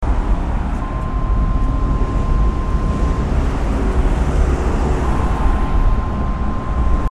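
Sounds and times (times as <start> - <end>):
traffic: 0.0 - 7.1.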